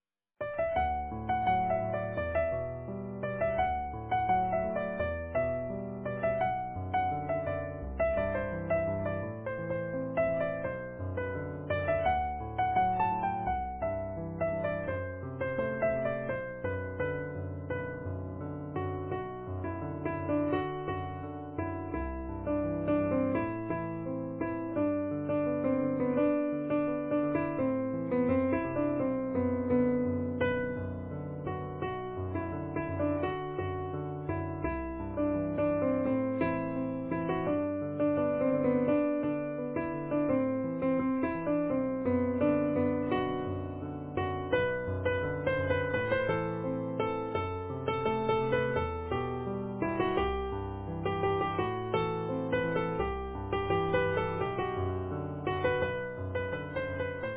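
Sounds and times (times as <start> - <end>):
easy piano: 0.0 - 57.3.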